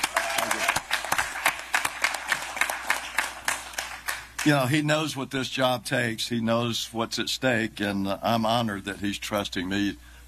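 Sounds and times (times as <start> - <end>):
audience applause for a senator at an election campaign event: 0.0 - 4.8
speech: 4.4 - 10.1.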